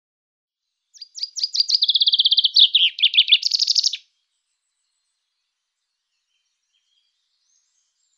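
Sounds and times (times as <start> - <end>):
common chaffinch song: 0.9 - 8.1.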